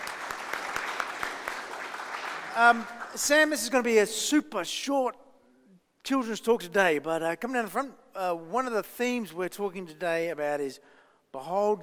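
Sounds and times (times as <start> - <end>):
audience round of applause: 0.0 - 3.3
speech: 2.6 - 5.2, 6.1 - 11.8.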